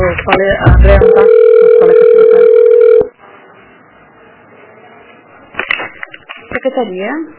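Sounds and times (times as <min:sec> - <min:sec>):
speech: 0:00.2 - 0:01.4, 0:06.8 - 0:07.3
telephone ringback tone during call transfer: 0:01.0 - 0:03.1.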